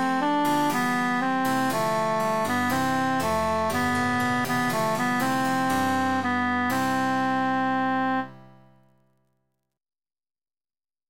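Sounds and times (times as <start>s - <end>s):
emphasized alto voice singing: 0.0s - 8.4s.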